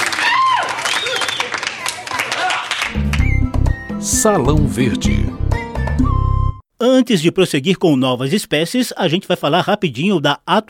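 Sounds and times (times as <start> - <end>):
crowd applause: 0.0 - 3.4
high cheers or whistles: 0.0 - 3.4
low music: 2.9 - 6.6
speech: 4.2 - 6.2, 6.8 - 10.6.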